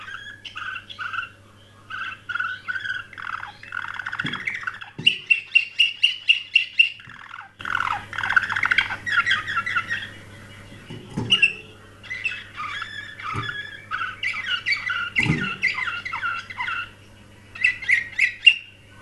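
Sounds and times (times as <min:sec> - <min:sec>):
canary song: 0:00.0 - 0:19.0
low background hum: 0:00.0 - 0:19.0
thumps: 0:10.8 - 0:11.6, 0:15.2 - 0:15.6.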